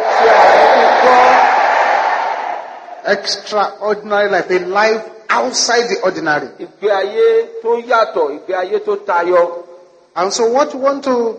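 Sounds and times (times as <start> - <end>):
audience shouting amen: 0.0 - 3.0
speech: 3.1 - 9.6, 10.2 - 11.3.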